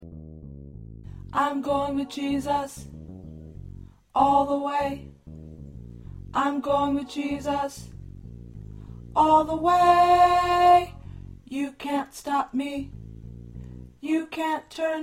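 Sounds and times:
tenor singing: 0:01.3 - 0:03.0, 0:04.2 - 0:05.2, 0:06.3 - 0:08.2, 0:09.0 - 0:13.0, 0:14.0 - 0:15.0.

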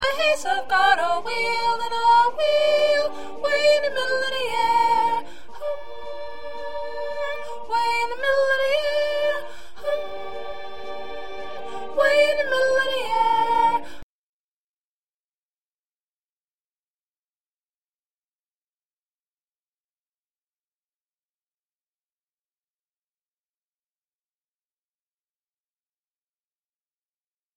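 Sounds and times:
second soprano singing: 0:00.0 - 0:14.0.

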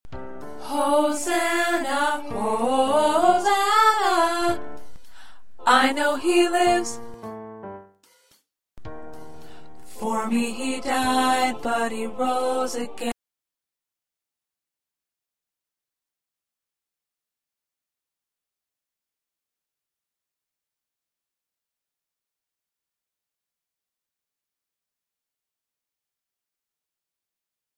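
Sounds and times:
tenor choir part singing: 0:00.6 - 0:04.8, 0:05.6 - 0:07.0, 0:09.9 - 0:13.2.

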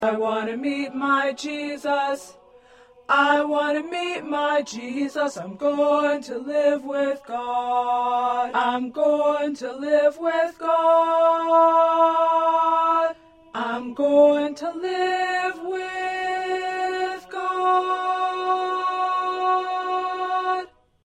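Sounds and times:
first tenor voice singing: 0:00.0 - 0:20.8.

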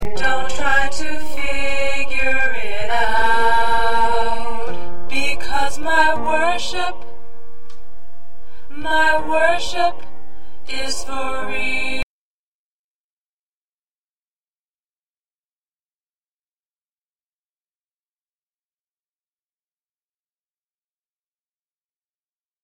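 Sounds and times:
alto choir part singing: 0:00.0 - 0:07.2, 0:08.7 - 0:12.0.

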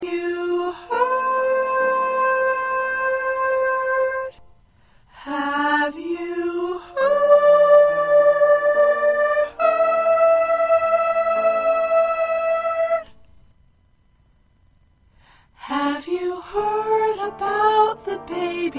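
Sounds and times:
first soprano singing: 0:00.0 - 0:04.4, 0:05.1 - 0:13.2, 0:15.6 - 0:18.7.

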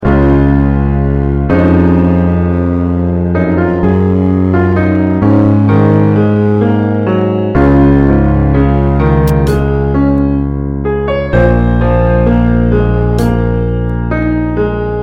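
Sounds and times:
musical accompaniment: 0:00.0 - 0:15.0.

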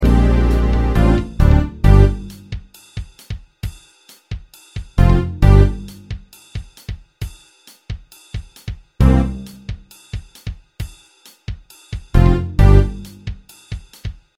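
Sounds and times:
musical accompaniment: 0:00.0 - 0:03.4, 0:05.0 - 0:06.9, 0:09.0 - 0:10.5, 0:12.1 - 0:14.1.

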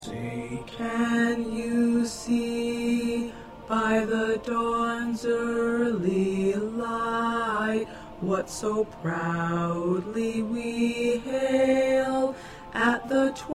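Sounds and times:
tenor singing: 0:00.0 - 0:13.5.

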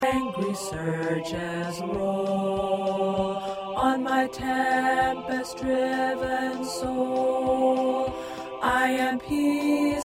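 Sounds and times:
tenor choir part singing: 0:00.0 - 0:10.0.

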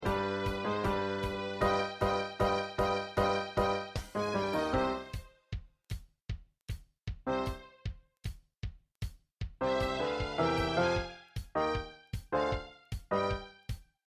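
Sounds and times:
musical accompaniment: 0:00.0 - 0:05.4, 0:07.3 - 0:07.9, 0:09.6 - 0:13.8.

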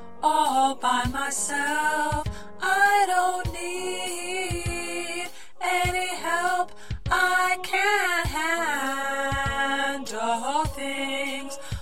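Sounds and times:
alto choir part singing: 0:00.2 - 0:11.8.

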